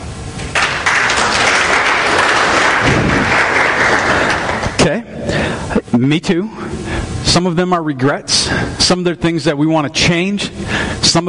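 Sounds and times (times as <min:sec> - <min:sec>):
crowd applause: 0:00.5 - 0:04.8
speech: 0:06.0 - 0:11.2.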